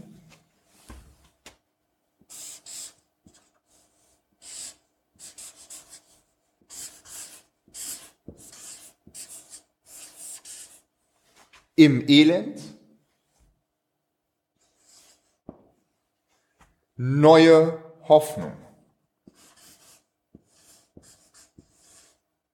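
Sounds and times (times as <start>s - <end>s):
marker pen drawing on a whiteboard: 2.3s - 10.9s, 14.6s - 15.6s, 19.2s - 22.5s
speech: 11.8s - 12.7s, 17.0s - 18.6s.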